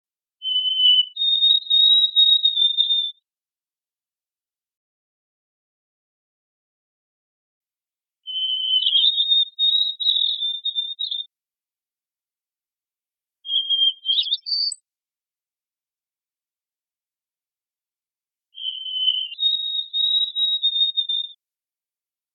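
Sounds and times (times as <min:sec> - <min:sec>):
white-throated sparrow whistled song: 0:00.4 - 0:03.2, 0:08.3 - 0:11.3, 0:13.4 - 0:14.8, 0:18.5 - 0:21.4.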